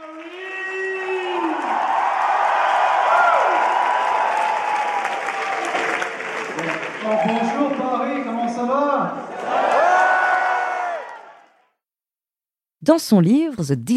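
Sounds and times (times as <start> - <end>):
whoops and cheering voices: 0.0 - 6.1, 9.4 - 11.4
large indoor crowd applauding at a film screening: 0.0 - 11.6
speech: 12.8 - 13.9.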